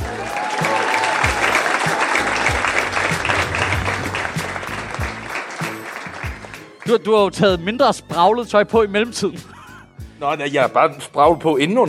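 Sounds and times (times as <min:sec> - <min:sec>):
audience applause: 0:00.0 - 0:07.0
speech: 0:06.9 - 0:09.6, 0:10.2 - 0:11.8.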